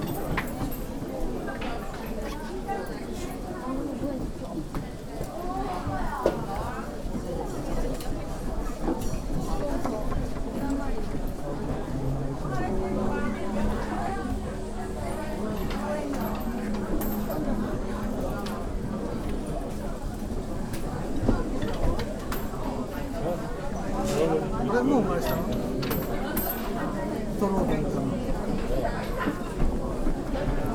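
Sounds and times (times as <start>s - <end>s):
overlapping chatter of many voices in Kyoto: 0.0s - 30.7s
sustained low tones: 10.2s - 22.9s.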